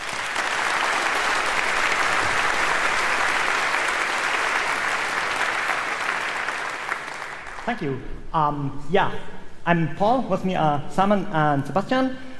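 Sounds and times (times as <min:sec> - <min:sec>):
audience applause: 0:00.0 - 0:07.8
speech: 0:07.7 - 0:12.3.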